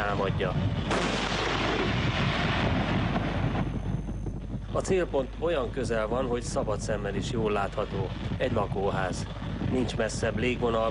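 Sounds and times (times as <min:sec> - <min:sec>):
speech: 0:00.2 - 0:01.2, 0:04.7 - 0:10.8
tank cannon firing: 0:00.9 - 0:03.5.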